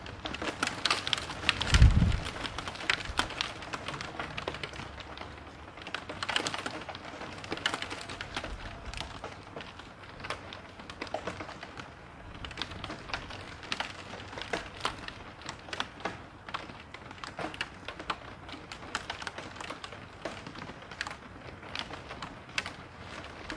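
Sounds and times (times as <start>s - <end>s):
rain in a city: 0.0s - 23.5s
thunder: 1.6s - 2.5s.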